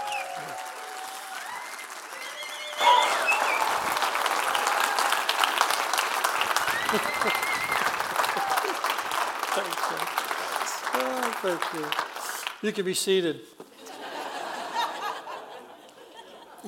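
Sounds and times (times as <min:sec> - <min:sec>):
crowd whooping and cheering: 0:00.0 - 0:09.2
audience applause: 0:00.0 - 0:12.7
laughter: 0:06.7 - 0:08.9, 0:13.7 - 0:16.6
speech: 0:06.9 - 0:07.5, 0:09.6 - 0:10.3, 0:11.0 - 0:13.6.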